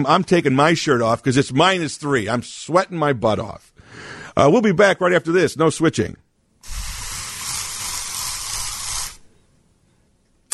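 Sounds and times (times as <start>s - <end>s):
speech: 0.0s - 6.8s
aerosol can of Cashmere Woods air freshener spraying: 6.6s - 9.3s.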